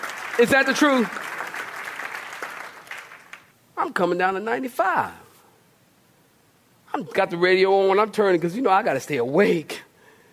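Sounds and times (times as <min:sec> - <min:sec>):
audience applause: 0:00.0 - 0:03.5
speech: 0:00.4 - 0:01.3, 0:03.8 - 0:05.2, 0:06.9 - 0:09.8.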